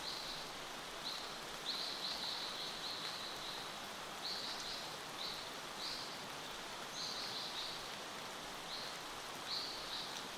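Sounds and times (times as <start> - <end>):
gentle rain on leaves and the forest floor: 0.0 - 10.3.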